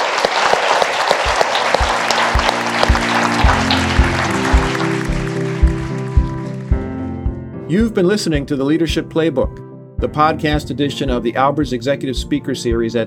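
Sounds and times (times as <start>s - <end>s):
audience applause: 0.0s - 6.8s
speech: 7.7s - 13.0s.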